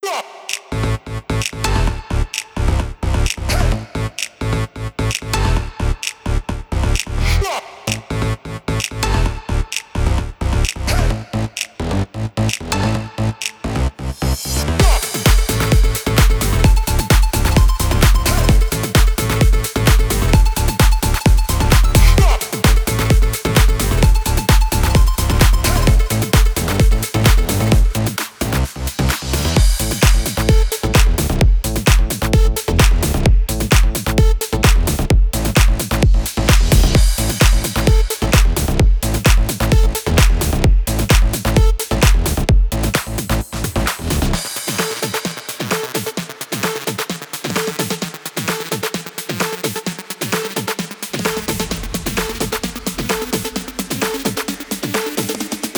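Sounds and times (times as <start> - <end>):
house electronic techno full mix: 0.0 - 55.7.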